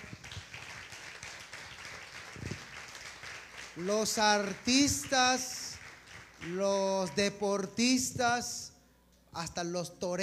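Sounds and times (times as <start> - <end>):
audience applause: 0.0 - 6.8
speech: 3.8 - 5.6, 6.4 - 8.7, 9.3 - 10.2.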